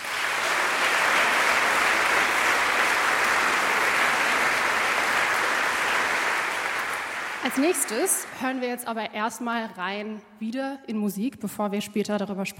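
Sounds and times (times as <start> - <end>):
audience applause: 0.0 - 8.6
speech: 7.5 - 12.5.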